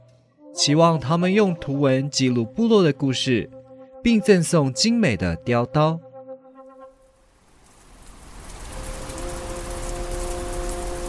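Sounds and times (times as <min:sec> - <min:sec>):
speech: 0:00.6 - 0:06.0
rain falling: 0:07.0 - 0:11.0.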